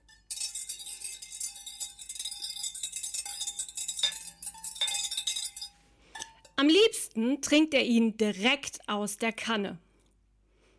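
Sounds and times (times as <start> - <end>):
spoon stirring cocoa in a cup: 0.0 - 6.6
speech: 7.2 - 9.9.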